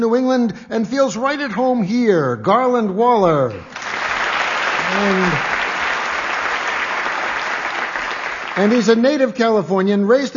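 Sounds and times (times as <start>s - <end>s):
speech: 0.0s - 3.8s, 4.9s - 5.6s, 8.6s - 10.3s
studio audience applause: 3.6s - 9.4s.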